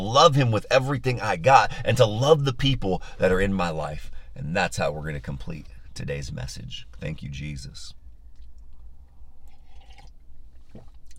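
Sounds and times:
speech: 0:00.1 - 0:08.0
sipping coffee: 0:09.4 - 0:11.1.

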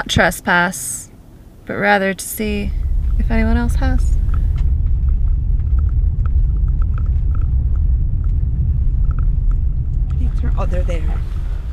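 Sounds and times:
car driving out to the front gate near Area 51: 0:00.0 - 0:11.7
speech: 0:00.1 - 0:01.0, 0:01.7 - 0:04.1
faint ticks: 0:04.0 - 0:10.2.

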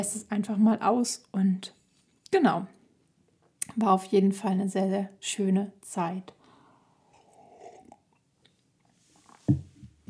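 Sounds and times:
speech: 0:00.0 - 0:02.8, 0:03.7 - 0:06.4
big sip of tea: 0:06.9 - 0:09.4.

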